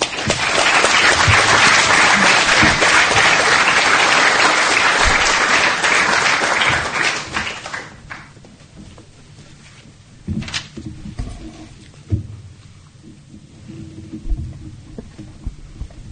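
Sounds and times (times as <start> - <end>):
audience applause welcoming a lecturer at LSE: 0.0 - 8.4.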